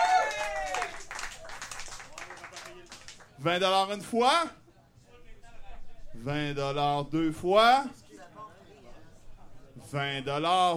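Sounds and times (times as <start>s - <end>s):
audience applause: 0.0s - 3.4s
speech: 3.4s - 4.6s, 6.2s - 8.0s, 9.9s - 10.7s.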